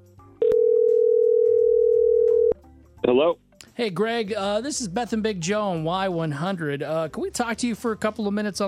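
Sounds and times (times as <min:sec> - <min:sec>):
telephone dial tone: 0:00.4 - 0:02.5
speech: 0:03.2 - 0:08.6.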